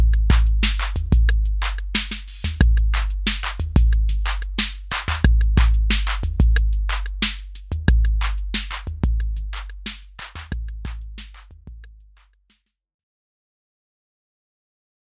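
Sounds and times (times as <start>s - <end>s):
acid house beat: 0.0s - 11.8s.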